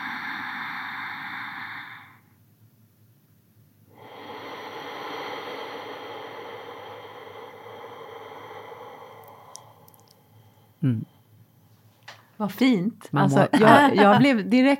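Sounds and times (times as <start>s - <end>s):
slow deep ujjayi breathing through the nose: 0.0s - 2.4s, 3.9s - 12.4s
speech: 10.8s - 11.1s, 12.4s - 14.7s.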